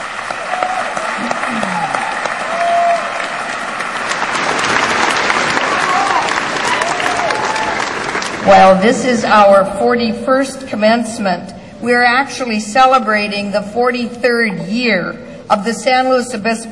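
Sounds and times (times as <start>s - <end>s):
large audience applauding at commencement: 0.0s - 8.5s
speech: 8.5s - 16.7s.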